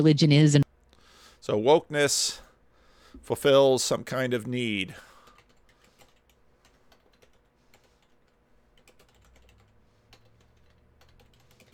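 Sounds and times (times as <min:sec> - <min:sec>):
speech: 0:00.0 - 0:00.6, 0:01.4 - 0:02.5, 0:03.1 - 0:05.1
computer keyboard typing: 0:05.2 - 0:11.7.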